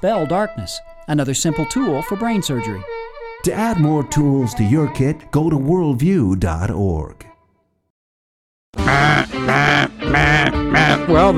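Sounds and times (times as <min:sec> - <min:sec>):
speech: 0:00.0 - 0:07.2, 0:08.7 - 0:11.3
cheap duck call honks: 0:08.8 - 0:11.3.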